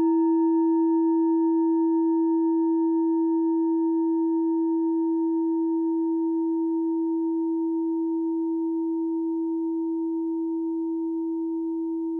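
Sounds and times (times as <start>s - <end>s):
set of singing bowls: 0.0s - 12.1s.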